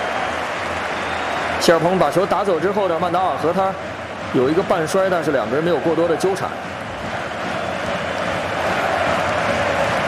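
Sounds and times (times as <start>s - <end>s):
Ipswich football fans cheering at Portman Road stadium: 0.0s - 10.0s
speech: 1.6s - 6.7s.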